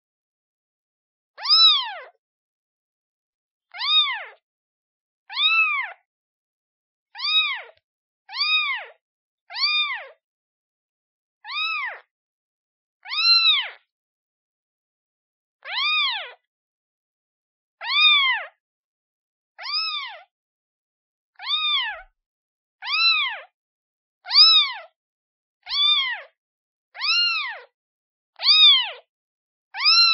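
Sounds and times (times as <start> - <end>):
kitten meowing calling for its mother: 1.4 - 2.2, 3.7 - 4.4, 5.3 - 6.0, 7.2 - 10.2, 11.4 - 12.1, 13.0 - 13.8, 15.7 - 16.3, 17.8 - 18.5, 19.6 - 20.3, 21.4 - 22.1, 22.8 - 23.5, 24.3 - 24.9, 25.7 - 26.3, 27.0 - 27.7, 28.4 - 29.0, 29.8 - 30.1.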